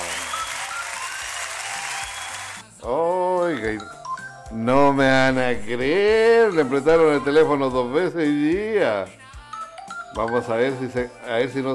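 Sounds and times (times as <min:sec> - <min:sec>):
audience applause: 0:00.0 - 0:02.6
speech: 0:02.8 - 0:09.2, 0:10.1 - 0:11.7.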